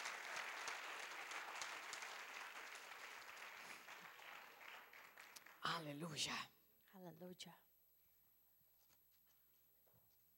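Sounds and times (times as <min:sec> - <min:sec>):
audience clapping: 0:00.0 - 0:06.0
speech: 0:05.7 - 0:07.7.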